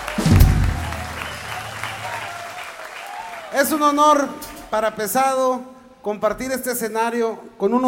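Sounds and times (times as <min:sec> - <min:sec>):
audience applause: 0:00.0 - 0:04.2
speech: 0:03.5 - 0:07.8.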